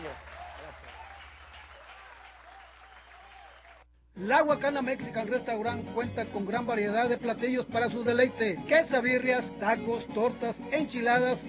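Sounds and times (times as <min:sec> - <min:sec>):
audience applause: 0:00.0 - 0:03.8
speech: 0:04.2 - 0:11.4.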